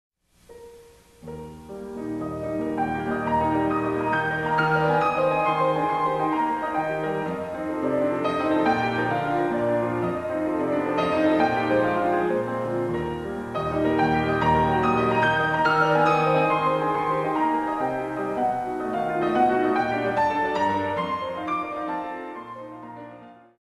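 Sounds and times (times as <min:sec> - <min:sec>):
lively classical prelude in E-flat major: 0:00.3 - 0:23.5.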